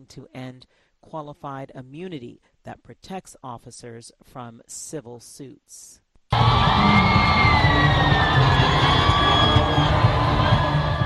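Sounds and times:
speech: 0:00.0 - 0:08.2
crowd cheering Pope Francis's arrival at Kinshasa's Ndolo Airport: 0:06.3 - 0:11.0
whoops and shouts from the crowd: 0:06.3 - 0:11.0.

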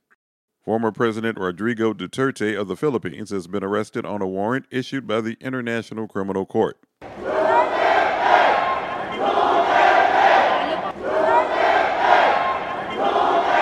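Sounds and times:
speech: 0:00.7 - 0:06.9
crowd of supporters shouting and chanting at airport: 0:07.0 - 0:13.6.

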